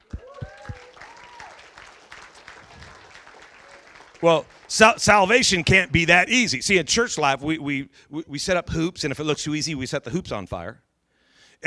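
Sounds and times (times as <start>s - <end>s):
audience applause: 0.0s - 6.0s
speech: 4.2s - 10.9s.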